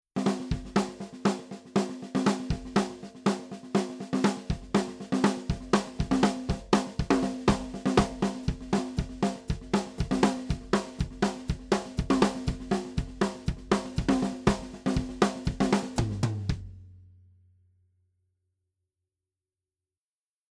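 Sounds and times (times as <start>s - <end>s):
unprocessed drumbeat recorded with a microphone: 0.2s - 16.9s.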